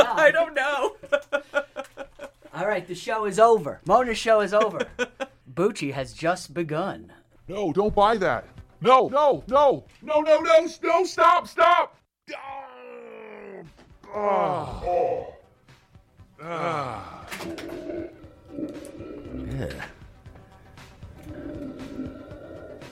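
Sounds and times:
laughter: 0.0 - 2.5, 4.4 - 5.4
speech: 0.2 - 1.2, 2.8 - 12.6, 14.1 - 15.3, 16.4 - 20.0
person groaning and moaning: 12.3 - 15.5, 16.4 - 19.9.

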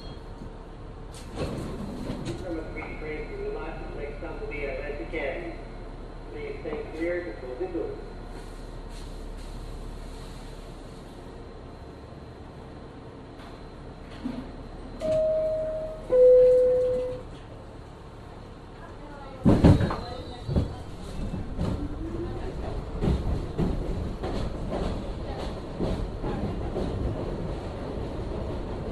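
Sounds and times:
subway train car rumble in Brooklyn: 0.0 - 28.9
short tones: 15.0 - 17.3.

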